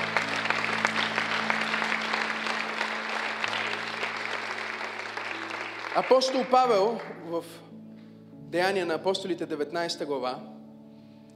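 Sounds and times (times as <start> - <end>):
audience applause: 0.0 - 7.2
speech: 6.0 - 7.7, 8.5 - 10.6.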